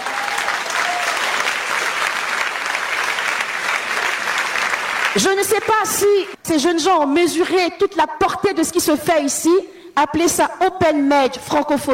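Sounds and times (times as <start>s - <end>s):
congregation applauding at a French-language worship service: 0.0s - 6.4s
speech: 5.2s - 11.9s.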